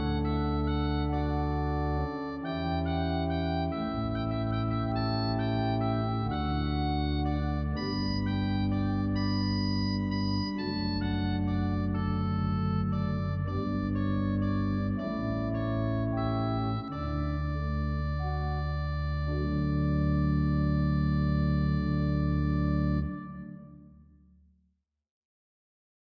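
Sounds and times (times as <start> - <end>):
church pipe organ: 0.0 - 24.1.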